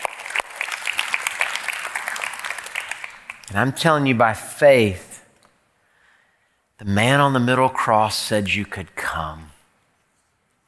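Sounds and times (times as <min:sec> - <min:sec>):
audience clapping: 0:00.0 - 0:03.8
speech: 0:03.5 - 0:05.1, 0:06.8 - 0:09.5.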